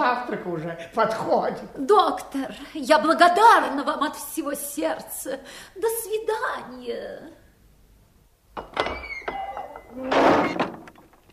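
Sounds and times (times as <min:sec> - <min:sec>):
speech: 0:00.2 - 0:07.4, 0:10.0 - 0:10.7
heavy cast-iron tower door shoved open with a strong push: 0:08.6 - 0:11.2.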